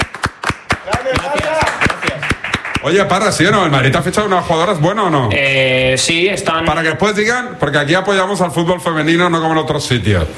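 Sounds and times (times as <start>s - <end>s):
applause: 0.0s - 3.2s
speech: 0.9s - 1.6s, 2.8s - 10.3s.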